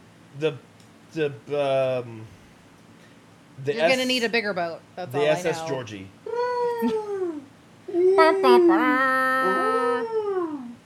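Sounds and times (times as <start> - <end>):
speech: 0.4 - 2.4, 3.6 - 7.1, 8.2 - 9.6
person imitating orca whale calls: 5.2 - 10.8.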